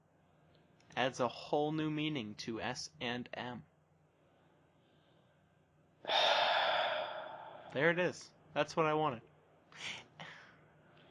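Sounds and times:
speech: 1.0s - 3.7s, 7.7s - 10.1s
man groaning: 6.1s - 7.8s.

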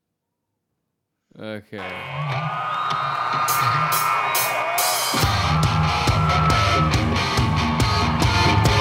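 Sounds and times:
speech: 1.4s - 4.1s
large concert crowd cheering: 1.8s - 8.7s
rock band playing with drums and guitar: 1.8s - 8.7s.

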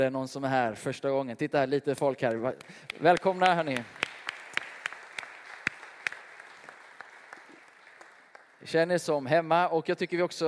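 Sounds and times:
speech: 0.0s - 4.2s, 8.6s - 10.4s
church audience applauding: 2.6s - 8.8s.

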